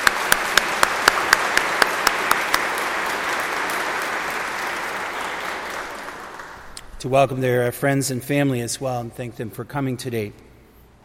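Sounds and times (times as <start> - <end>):
church congregation clapping for a couple celebrating their 40th anniversary: 0.0 - 7.0
speech: 7.0 - 10.5.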